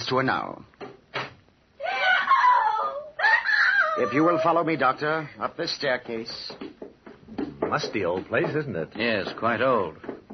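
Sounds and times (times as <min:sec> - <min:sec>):
speech: 0:00.1 - 0:00.7, 0:04.0 - 0:06.7, 0:07.7 - 0:10.0
person screaming: 0:01.8 - 0:04.7.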